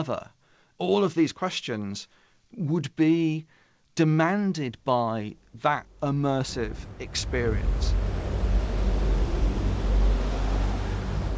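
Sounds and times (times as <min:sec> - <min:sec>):
speech: 0:00.0 - 0:08.1
low bass hum at Stonehenge: 0:05.3 - 0:11.3.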